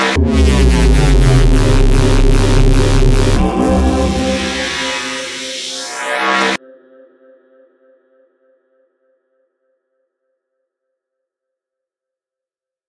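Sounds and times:
musical riffs: 0.0s - 6.6s
sound design effects: 0.0s - 6.6s.

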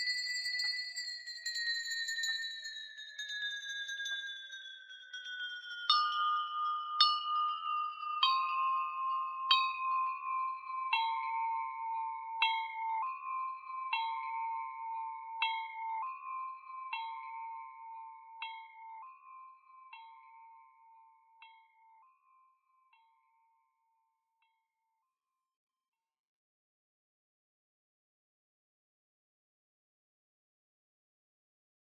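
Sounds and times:
singing bowls: 0.0s - 23.1s
bells: 0.0s - 23.6s
chimes: 0.0s - 24.8s.

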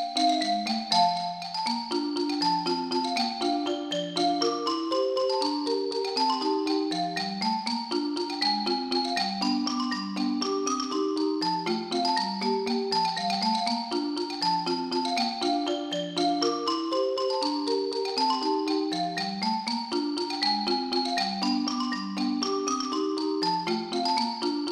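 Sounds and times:
waltz music: 0.2s - 24.6s.

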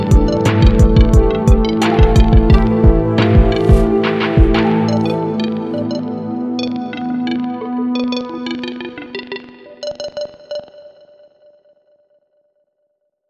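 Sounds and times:
fantasy RPG beat: 0.0s - 10.3s.

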